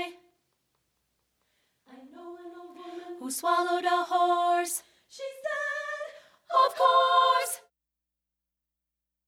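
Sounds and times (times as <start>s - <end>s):
soprano treble voice singing: 1.9s - 7.7s.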